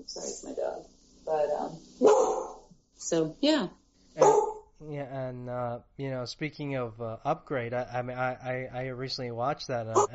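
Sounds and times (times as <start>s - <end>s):
speech: 0.0s - 10.1s
dog barking: 2.0s - 2.7s, 4.2s - 4.7s, 10.0s - 10.1s.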